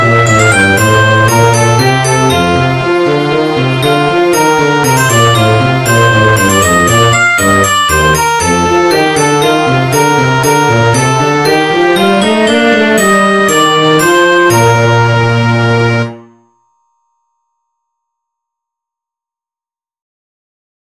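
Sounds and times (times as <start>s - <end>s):
minuet in B-flat major: 0.0s - 16.5s.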